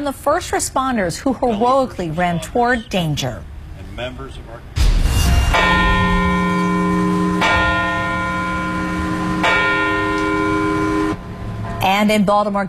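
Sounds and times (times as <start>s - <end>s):
speech: 0.0s - 4.7s, 11.8s - 12.6s
church bell tolling at a September 11 memorial in Parkville, Baltimore County: 4.8s - 12.0s.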